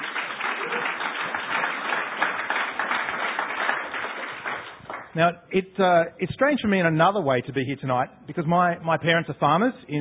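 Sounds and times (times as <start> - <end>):
audience applause: 0.0 - 5.2
speech: 5.2 - 10.0.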